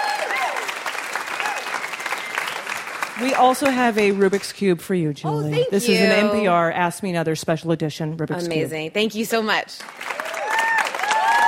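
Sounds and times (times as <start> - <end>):
whoops and cheers: 0.0 - 2.6, 10.1 - 11.4
crowd applauding: 0.0 - 4.6, 9.8 - 11.4
speech: 3.2 - 10.0.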